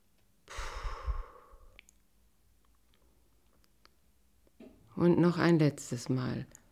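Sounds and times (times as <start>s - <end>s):
person exhaling slowly during a belly-breathing exercise: 0.5s - 1.8s
speech: 5.0s - 6.6s.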